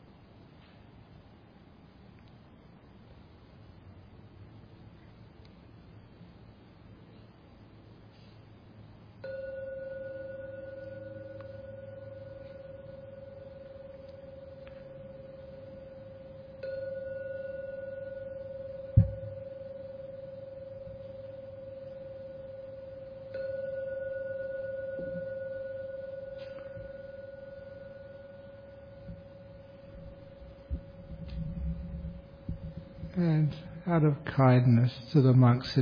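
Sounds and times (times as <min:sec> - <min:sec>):
meditation gong ringing: 0:09.2 - 0:35.7
speech: 0:33.2 - 0:35.8.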